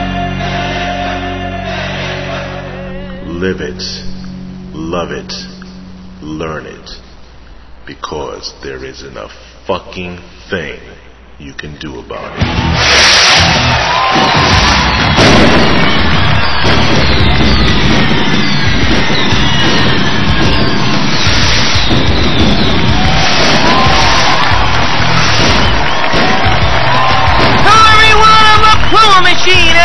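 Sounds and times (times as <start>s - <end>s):
huge arena crowd cheering: 0.0s - 3.7s, 12.3s - 29.8s
speech: 3.4s - 4.2s, 4.8s - 5.5s, 6.2s - 7.1s, 7.9s - 14.5s.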